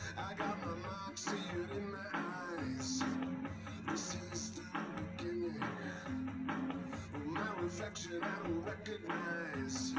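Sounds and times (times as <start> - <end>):
live-recorded drums: 0.0 - 9.9.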